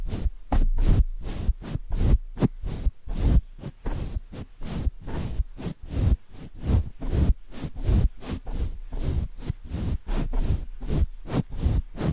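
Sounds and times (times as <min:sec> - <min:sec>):
scratchy brushing strokes across the microphone: 0:00.0 - 0:12.1.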